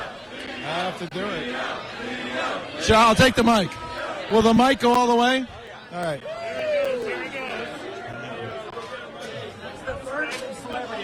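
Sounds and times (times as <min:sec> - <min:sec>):
party crowd chattering and calling out: 0:00.0 - 0:11.0
speech: 0:00.6 - 0:06.3
loud whoops: 0:06.2 - 0:07.4.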